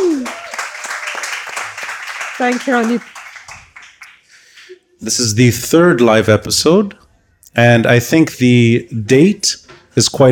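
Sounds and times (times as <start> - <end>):
live audience applause: 0.0 - 4.3
speech: 2.4 - 3.2, 5.0 - 7.0, 7.6 - 10.3.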